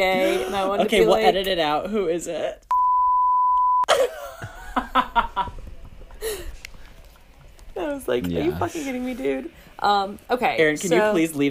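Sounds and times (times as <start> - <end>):
people laughing: 0.0 - 1.4, 3.9 - 6.6
speech: 0.0 - 2.7, 7.8 - 11.4
censor bleep: 2.7 - 3.9.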